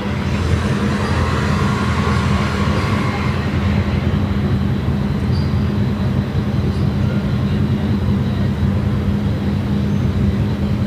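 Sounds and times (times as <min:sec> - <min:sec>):
bright hissing noise: 0:00.0 - 0:05.8
passing vehicles rumbling on Via Moscova in Milan in the evening: 0:00.0 - 0:06.7
constant droning hum: 0:00.0 - 0:10.8.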